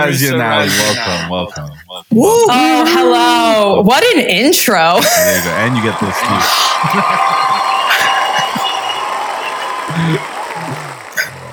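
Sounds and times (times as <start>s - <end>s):
laughter: 0.0s - 3.7s, 4.9s - 11.5s
speech: 0.0s - 7.6s, 10.0s - 10.3s
clapping applause: 5.3s - 11.5s.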